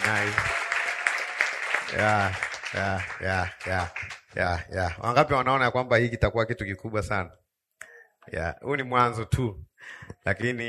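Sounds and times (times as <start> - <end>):
audience applauding pastors who organised a church gathering: 0.0 - 5.0
speech: 0.1 - 0.6, 1.9 - 7.4, 8.2 - 10.6.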